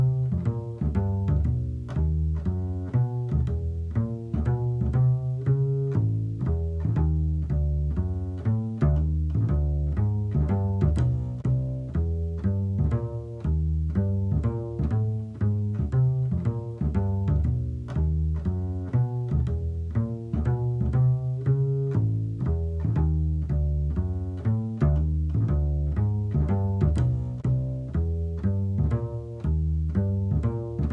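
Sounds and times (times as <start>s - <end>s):
bass: 0.0s - 30.9s.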